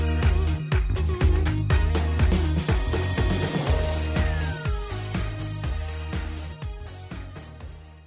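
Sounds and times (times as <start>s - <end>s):
instrumental music: 0.0s - 8.0s
sound effects: 2.5s - 6.6s.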